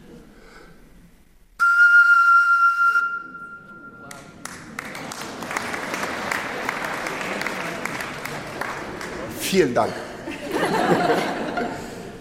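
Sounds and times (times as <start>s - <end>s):
tone from blowing across the mouth of a bottle partly filled with water: 1.6s - 4.1s
audience applause: 4.4s - 9.9s
laughter: 4.8s - 12.2s
speech: 9.5s - 10.1s.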